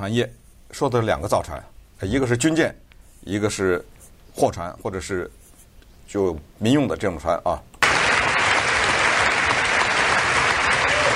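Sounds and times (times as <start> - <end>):
speech: 0.0 - 5.4, 6.1 - 7.7
audience applause: 7.8 - 11.1.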